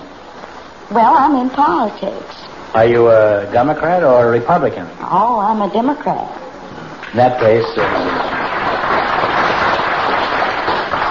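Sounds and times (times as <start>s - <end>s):
speech: 0.9s - 6.4s, 7.1s - 8.3s
audience applause: 7.4s - 11.1s.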